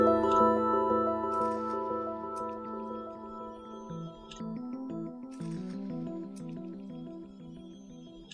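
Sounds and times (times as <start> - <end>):
water bells: 0.0 - 4.8.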